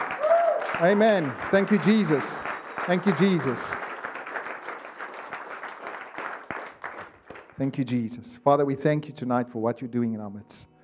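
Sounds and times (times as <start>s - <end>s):
crowd applause: 0.0s - 7.6s
speech: 0.8s - 3.8s, 7.6s - 10.7s.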